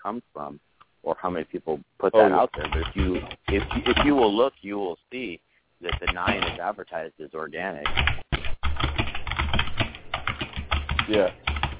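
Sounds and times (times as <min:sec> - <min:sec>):
speech: 0:00.0 - 0:08.2, 0:11.1 - 0:11.5
someone typing on a computer keyboard: 0:02.3 - 0:04.3, 0:05.8 - 0:06.6, 0:07.8 - 0:11.7.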